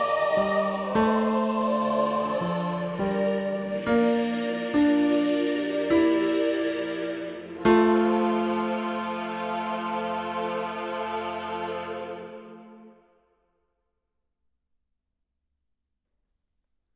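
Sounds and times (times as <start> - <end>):
tenor singing: 0.0 - 12.9.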